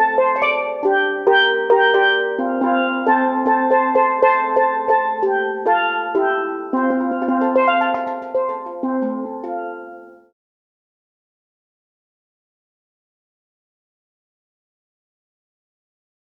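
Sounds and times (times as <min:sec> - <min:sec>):
steel pan solo: 0:00.0 - 0:10.3.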